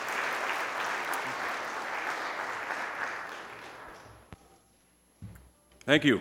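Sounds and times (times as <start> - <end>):
audience round of applause: 0.0 - 4.3.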